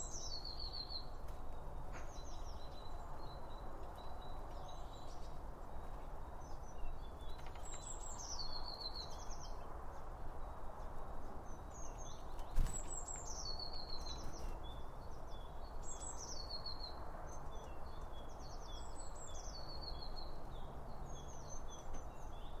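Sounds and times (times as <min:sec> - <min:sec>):
small birds singing: 0:00.0 - 0:22.5.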